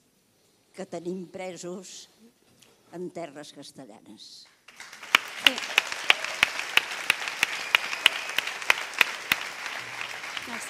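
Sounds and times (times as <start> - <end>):
speech: 0.8 - 5.8, 10.5 - 10.6
audience applauding with rhythmic sharp claps: 4.7 - 10.6.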